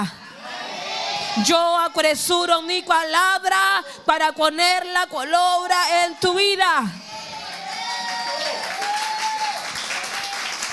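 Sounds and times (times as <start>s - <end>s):
speech: 0.0s - 0.2s, 1.4s - 7.0s
audience applauding: 7.2s - 10.7s.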